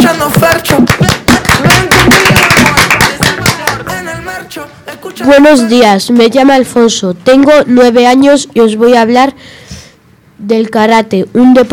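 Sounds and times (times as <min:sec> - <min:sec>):
audience applause: 0:01.0 - 0:03.8
speech: 0:05.3 - 0:09.6, 0:10.4 - 0:11.7.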